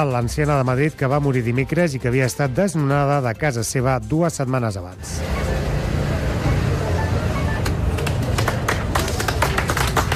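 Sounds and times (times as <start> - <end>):
speech: 0.0 - 5.6
murmur: 5.2 - 10.1
crowd applause after a minute of silence: 7.8 - 10.1.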